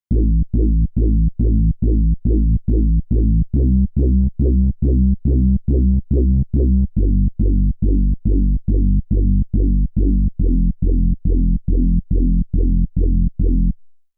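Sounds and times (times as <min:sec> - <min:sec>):
hard trance bass: 0:00.1 - 0:13.8.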